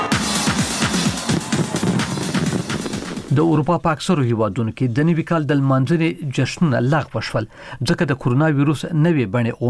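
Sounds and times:
New Year fireworks over Sydney Australia welcoming 2020: 0.2s - 4.0s
speech: 3.4s - 9.6s.

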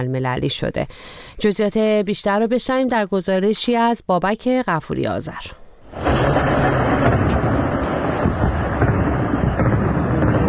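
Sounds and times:
speech: 0.0s - 6.1s
anti-aircraft gunfire during airstrikes near Aleppo Syria: 5.9s - 10.4s.

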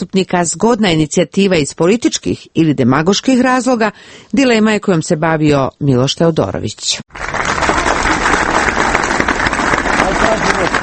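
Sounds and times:
speech: 0.0s - 7.6s
supporters clapping in central Belgrade: 7.1s - 10.8s.

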